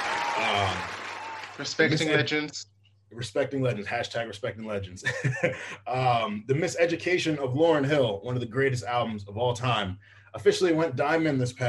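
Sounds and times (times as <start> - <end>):
crowd applause: 0.0 - 2.3
laughter: 1.6 - 2.3, 4.8 - 7.2
speech: 1.6 - 11.6.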